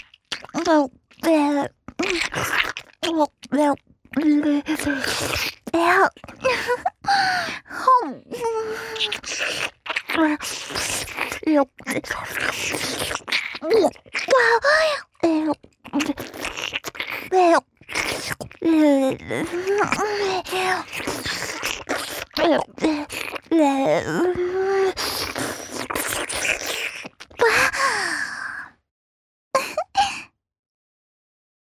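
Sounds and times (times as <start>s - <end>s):
wet licking: 0.0s - 1.3s, 1.9s - 6.8s, 9.0s - 14.5s, 15.5s - 18.6s, 19.4s - 23.5s, 24.3s - 27.4s
wet sucking sounds: 0.0s - 7.7s, 8.5s - 28.2s.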